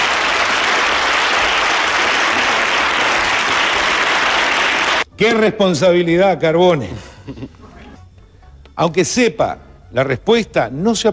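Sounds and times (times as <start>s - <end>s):
audience applause: 0.0s - 5.1s
speech: 5.2s - 7.7s, 8.8s - 11.1s.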